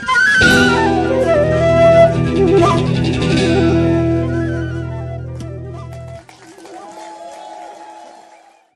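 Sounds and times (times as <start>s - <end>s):
jazz music: 0.0s - 6.2s.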